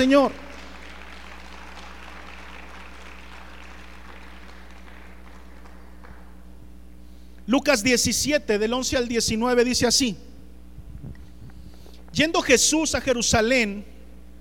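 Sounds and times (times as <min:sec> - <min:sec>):
speech: 0:00.0 - 0:00.5, 0:07.5 - 0:10.3, 0:12.2 - 0:13.9
audience applauding: 0:00.0 - 0:06.4
low electrical hum: 0:00.0 - 0:14.4.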